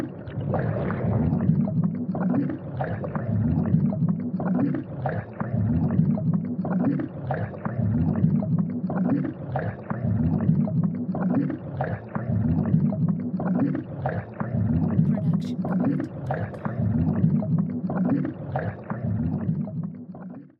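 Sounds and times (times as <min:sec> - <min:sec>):
underwater bubbles: 0:00.0 - 0:20.4.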